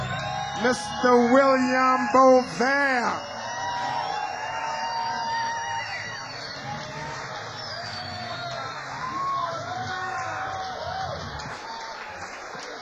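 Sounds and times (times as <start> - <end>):
crowd clapping: 0.0 - 12.7
shrill whistles: 0.0 - 12.7
speech: 0.6 - 3.3.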